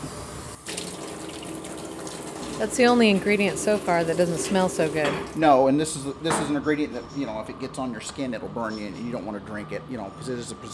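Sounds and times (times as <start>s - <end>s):
tap water running into a sink rinsing containers: 0.6s - 5.4s
speech: 2.6s - 10.7s.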